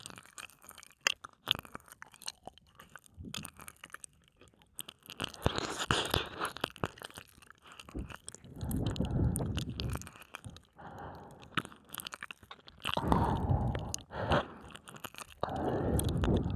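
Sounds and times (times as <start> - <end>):
ear licking sounds on the right: 5.1 - 16.5.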